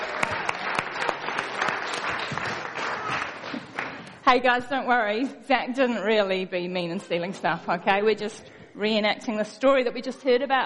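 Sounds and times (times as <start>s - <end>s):
audience clapping: 0.0s - 4.2s
speech: 4.3s - 10.6s.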